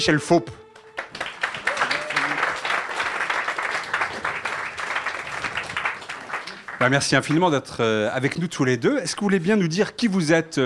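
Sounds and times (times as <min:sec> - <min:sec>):
speech: 0:00.0 - 0:00.6, 0:06.8 - 0:10.6
audience applause welcoming two speakers at a public talk: 0:00.8 - 0:07.6.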